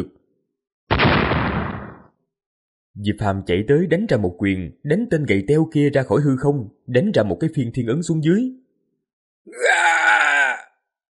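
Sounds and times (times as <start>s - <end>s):
speech: 3.0s - 8.6s, 9.4s - 10.0s
man's agonized scream of pain: 9.5s - 10.8s.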